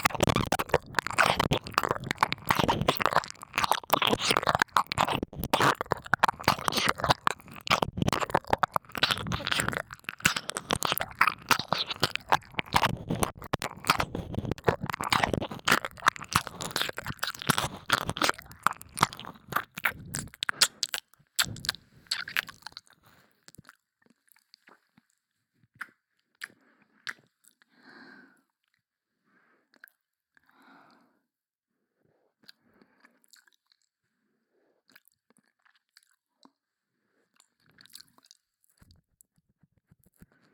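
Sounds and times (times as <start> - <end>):
ASMR ear licking in the left channel: 0.0 - 23.0.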